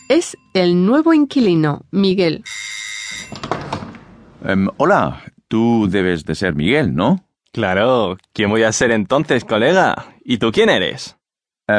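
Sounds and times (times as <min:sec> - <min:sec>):
doorbell ringing: 0:00.0 - 0:01.1, 0:02.4 - 0:03.7
speech: 0:00.1 - 0:02.7, 0:04.4 - 0:11.7.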